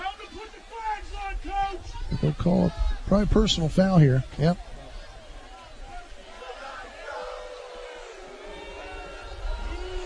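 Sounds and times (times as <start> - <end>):
speech: 2.1 - 4.7
Middletown crowd groaning at a football game: 5.5 - 10.0.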